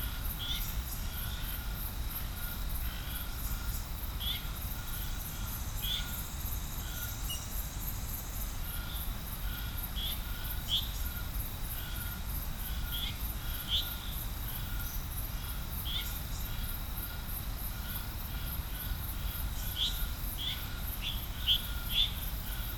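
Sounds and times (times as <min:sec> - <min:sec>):
frog chorus at Serrinha do Alambari in Brazil: 0:00.0 - 0:22.7.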